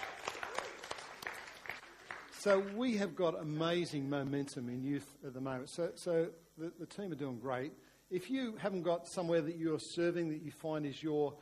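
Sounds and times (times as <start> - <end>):
audience applause: 0.0 - 2.8
speech: 2.4 - 11.3.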